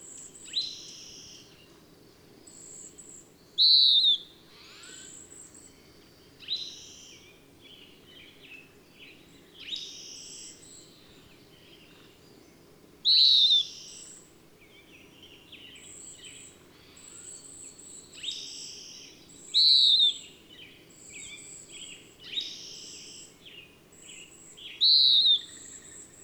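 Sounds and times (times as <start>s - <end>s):
bird chirping song: 2.5s - 26.2s.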